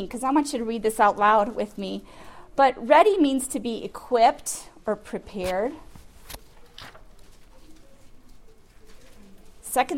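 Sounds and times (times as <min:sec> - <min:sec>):
speech: 0:00.0 - 0:05.8, 0:09.7 - 0:09.9
Bible pages turning: 0:05.4 - 0:09.6.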